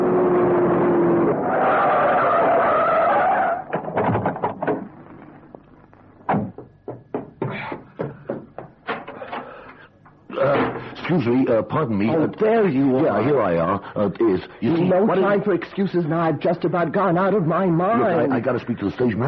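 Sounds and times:
car tires skidding and squealing: 0:01.0 - 0:03.8
sharp knocks and clatters: 0:03.7 - 0:05.1, 0:06.3 - 0:10.9
speech: 0:11.2 - 0:19.2.

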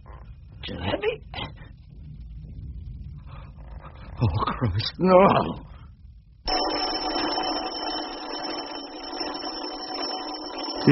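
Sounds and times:
speech: 0:00.7 - 0:01.6, 0:04.2 - 0:05.7
electric doorbell ringing: 0:06.5 - 0:10.8.

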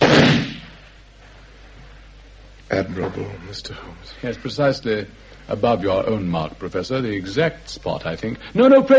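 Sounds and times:
pistol shot fired at a bullet mark on a wall: 0:00.0 - 0:00.8
speech: 0:02.7 - 0:08.9.

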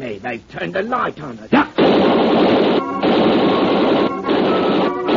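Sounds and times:
speech: 0:00.0 - 0:05.0
gunfire aimed at a man on a ship: 0:01.8 - 0:04.6.

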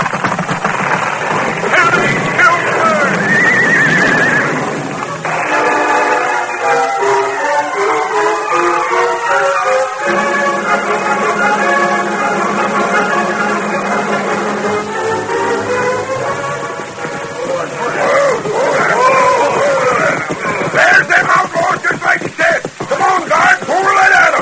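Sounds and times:
horse Silver's hooves pounding across a wooden bridge: 0:00.0 - 0:24.3
horse Silver whinnying: 0:01.2 - 0:06.2, 0:16.1 - 0:24.3.

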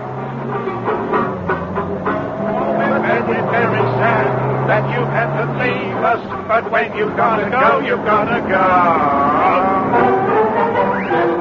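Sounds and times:
car engine humming as it pulls away: 0:00.0 - 0:11.3
voice-like sounds: 0:02.8 - 0:10.0
speech: 0:06.2 - 0:10.2.

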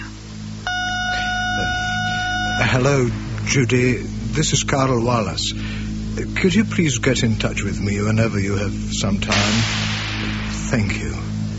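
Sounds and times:
low hum: 0:00.0 - 0:11.5
answering machine beep: 0:00.7 - 0:02.9
speech: 0:02.6 - 0:09.9, 0:10.7 - 0:11.3.

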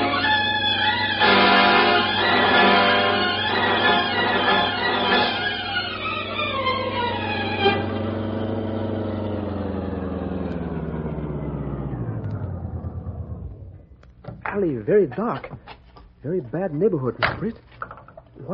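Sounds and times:
car engine idling: 0:00.0 - 0:14.5
speech: 0:14.6 - 0:17.7, 0:18.4 - 0:18.5.

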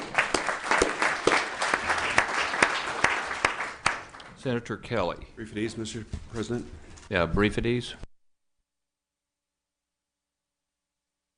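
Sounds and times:
applause welcoming a guest to the senate chambers: 0:00.0 - 0:04.4
speech: 0:04.4 - 0:08.0.

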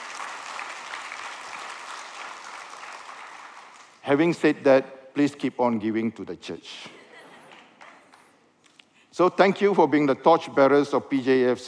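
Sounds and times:
audience applause: 0:00.0 - 0:04.0
speech: 0:04.0 - 0:07.0, 0:09.2 - 0:11.6.

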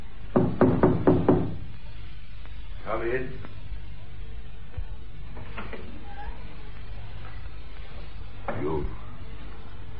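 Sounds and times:
knocking on a cottage door: 0:00.3 - 0:01.6
speech: 0:03.0 - 0:03.5.

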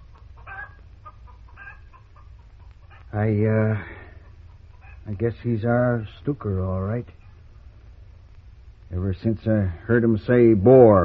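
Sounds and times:
Wyandotte hen giving a drawn-out clucking squawk: 0:00.0 - 0:05.2
speech: 0:03.1 - 0:04.0, 0:05.1 - 0:07.2, 0:09.0 - 0:11.0.

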